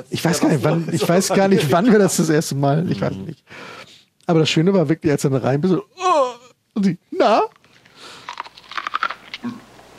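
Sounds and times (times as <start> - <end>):
speech: 0.0 - 6.0, 6.8 - 7.6, 9.4 - 9.6
biting into and chewing crunchy raw food: 7.5 - 9.9.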